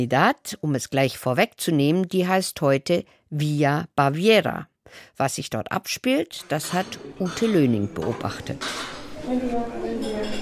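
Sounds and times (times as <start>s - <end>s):
speech: 0.0s - 10.4s
dishes and cutlery clinking in a breakfast room: 6.3s - 10.4s
murmur of indistinct voices: 6.7s - 10.4s.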